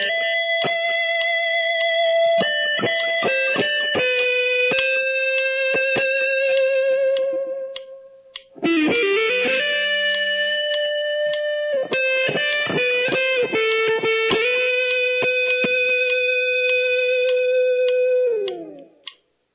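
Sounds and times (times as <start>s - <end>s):
guitar lick: 0.0s - 19.2s.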